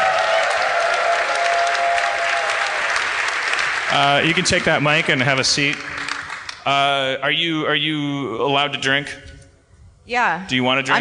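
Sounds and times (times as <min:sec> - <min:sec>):
faint whoops: 0:00.0 - 0:02.9
crowd clapping: 0:00.0 - 0:06.9
speech: 0:03.9 - 0:06.0, 0:06.6 - 0:09.3, 0:10.1 - 0:10.9.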